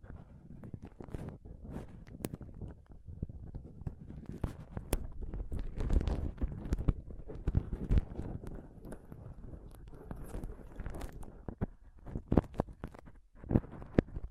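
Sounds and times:
close-up microphone scratching and touching: 0:00.0 - 0:14.2.

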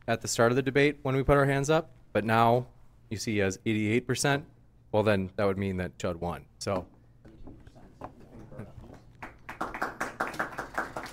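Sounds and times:
speech: 0:00.1 - 0:06.9
audience applause: 0:09.2 - 0:11.1.

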